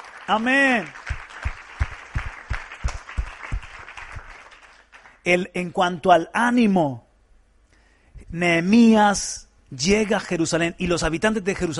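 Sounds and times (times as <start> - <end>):
audience applause: 0.0 - 5.2
speech: 0.3 - 1.0, 5.3 - 7.0, 8.3 - 11.7.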